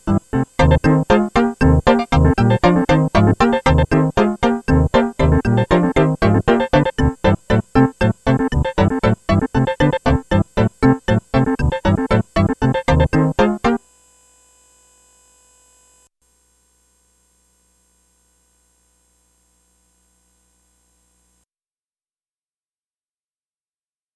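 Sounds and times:
waltz music: 0:00.0 - 0:13.8.

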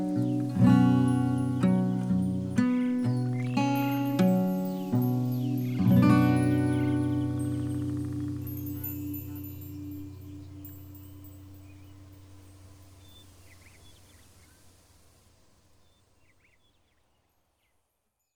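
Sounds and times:
instrumental song: 0:00.0 - 0:12.4.

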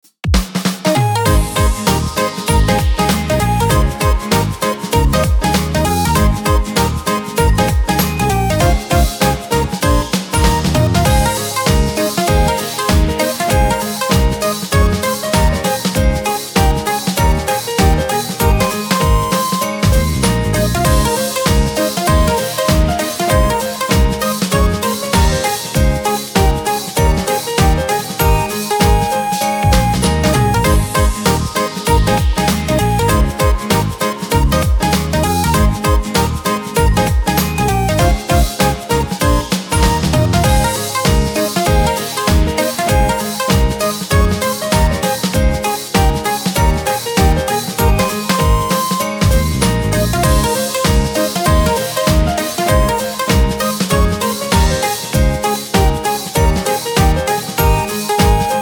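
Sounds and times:
music at an event: 0:00.0 - 0:58.6.

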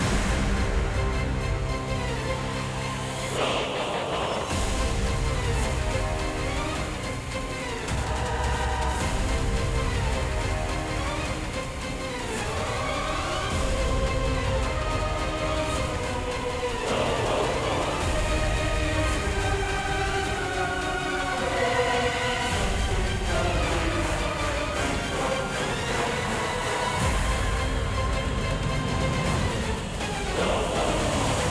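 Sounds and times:
boss battle music: 0:00.0 - 0:31.4.

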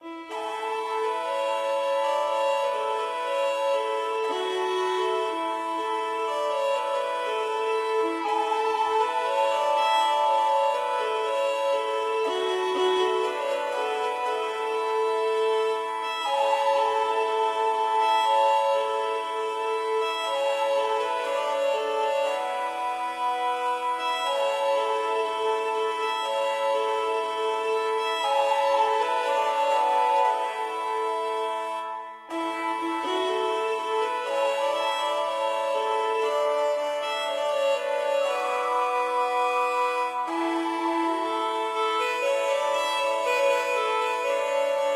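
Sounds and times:
calm Irish music: 0:00.0 - 0:44.9.

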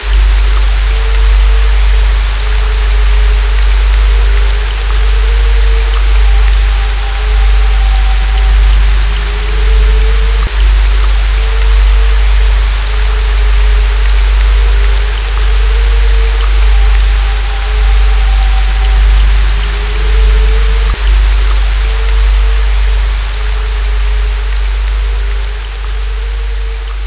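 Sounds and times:
haunted rain: 0:00.0 - 0:27.0.

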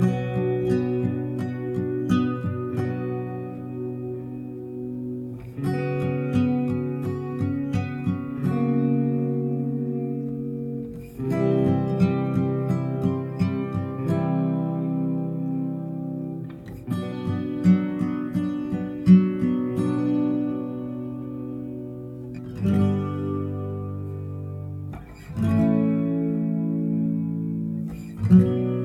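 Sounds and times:
ambient guitar: 0:00.0 - 0:28.8.

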